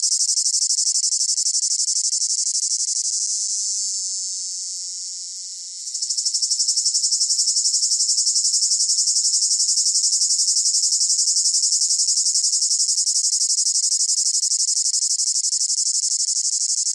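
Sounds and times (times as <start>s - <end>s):
cicada call: 0.0s - 16.9s.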